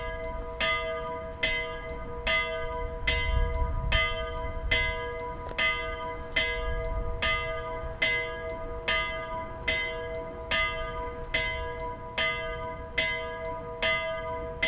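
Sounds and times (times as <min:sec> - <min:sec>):
church bell of St-Nikolaus in Willisau: 0:00.0 - 0:14.6.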